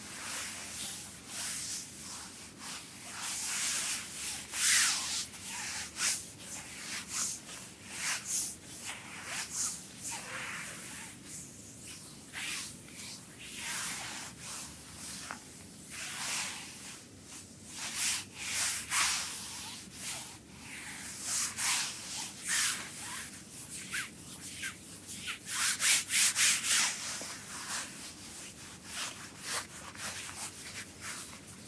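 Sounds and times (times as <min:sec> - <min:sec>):
hand massage with gritty scrub: 0:00.2 - 0:31.6.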